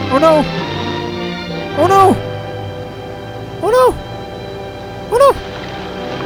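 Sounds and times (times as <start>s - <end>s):
Wilhelm scream sound effect: 0.1s - 0.5s, 1.8s - 2.2s, 3.6s - 4.0s, 5.1s - 5.4s
speech: 0.2s - 0.6s, 1.8s - 2.3s.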